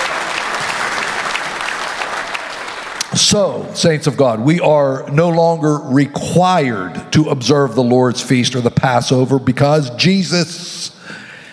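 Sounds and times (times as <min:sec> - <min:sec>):
audience hand clapping: 0:00.0 - 0:03.4
speech: 0:03.2 - 0:10.8.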